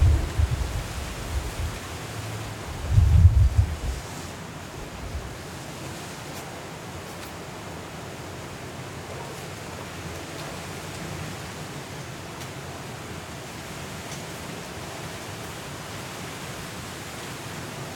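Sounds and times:
heavy low wind gusts: 0:00.0 - 0:05.6
Hurricane Kay wind and rain roaring: 0:00.0 - 0:17.9.

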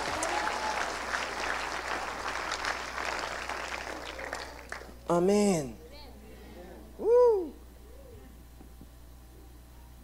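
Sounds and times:
crowd clapping: 0:00.0 - 0:05.2
speech: 0:05.1 - 0:05.8.

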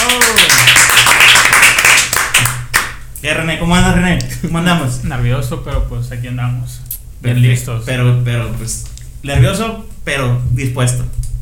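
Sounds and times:
applause: 0:00.0 - 0:03.0
speech: 0:03.6 - 0:11.2.

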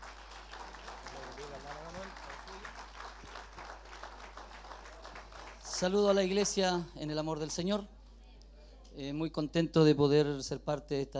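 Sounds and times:
audience applauding: 0:00.0 - 0:06.2
speech: 0:05.8 - 0:08.0, 0:09.0 - 0:11.1.

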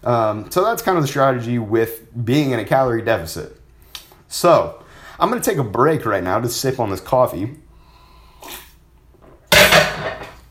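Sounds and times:
speech: 0:00.0 - 0:03.6, 0:04.3 - 0:07.6
dish falling in a kitchen: 0:09.2 - 0:10.5.

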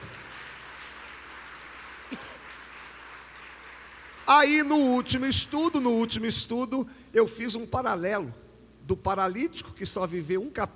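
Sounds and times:
audience applause: 0:00.0 - 0:04.6
speech: 0:04.3 - 0:10.7.

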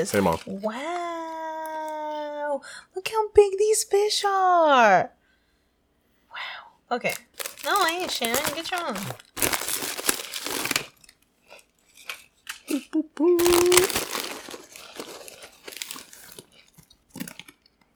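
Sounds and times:
speech: 0:00.0 - 0:01.0, 0:02.6 - 0:05.2, 0:06.4 - 0:09.5, 0:12.7 - 0:14.0
munching and crunching snacks: 0:07.1 - 0:17.9.

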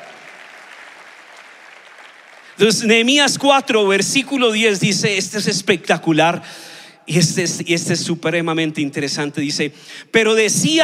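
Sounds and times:
audience applause: 0:00.0 - 0:02.6
speech: 0:02.6 - 0:10.8.

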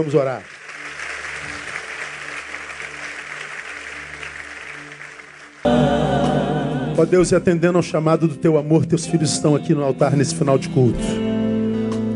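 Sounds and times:
speech: 0:00.0 - 0:00.6, 0:07.0 - 0:11.2
audience applause: 0:00.0 - 0:05.7
low steady musical backing: 0:00.0 - 0:12.1.

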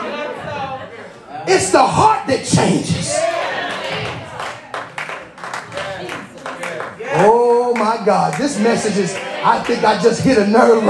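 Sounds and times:
speech: 0:01.5 - 0:03.2, 0:07.2 - 0:10.8
few people clapping: 0:03.2 - 0:10.0.

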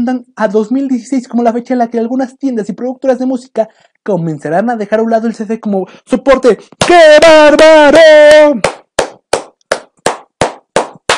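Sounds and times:
speech: 0:00.0 - 0:08.8
applause sound effect of slow steady hand clapping: 0:08.6 - 0:11.1.

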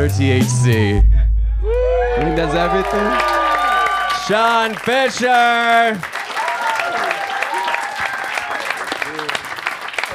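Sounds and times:
speech: 0:00.0 - 0:01.2, 0:02.3 - 0:03.4, 0:04.3 - 0:06.1
audience applause: 0:02.1 - 0:10.1.

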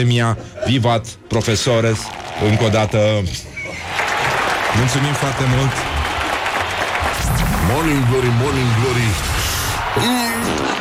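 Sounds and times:
speech: 0:00.0 - 0:03.9, 0:04.7 - 0:05.9, 0:07.7 - 0:09.3, 0:10.0 - 0:10.7
applause: 0:03.8 - 0:10.7.

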